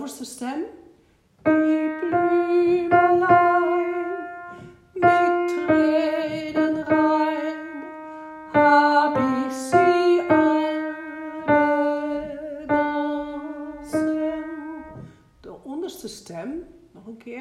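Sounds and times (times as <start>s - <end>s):
alto voice singing: 1.5s - 15.2s.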